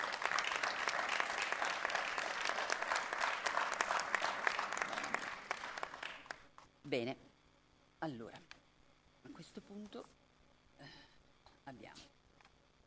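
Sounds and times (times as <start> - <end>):
applause: 0.0 - 6.5
speech: 6.9 - 7.3, 8.0 - 8.6, 9.3 - 10.2, 10.8 - 11.0, 11.7 - 12.2.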